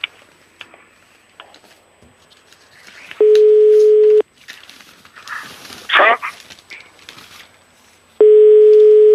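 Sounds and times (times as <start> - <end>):
telephone ringing tone: 3.2 - 4.2, 8.2 - 9.1.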